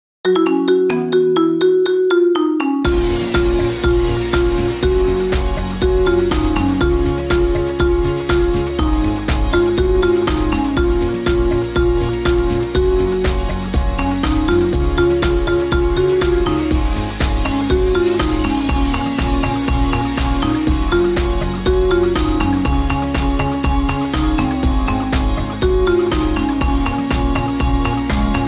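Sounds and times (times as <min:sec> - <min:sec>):
marimba: 0:00.3 - 0:28.4.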